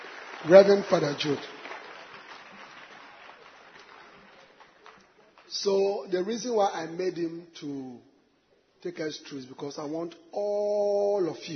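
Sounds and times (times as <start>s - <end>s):
congregation clapping at a church gathering: 0.0s - 5.8s
speech: 0.4s - 1.6s, 5.5s - 8.1s, 8.8s - 11.5s.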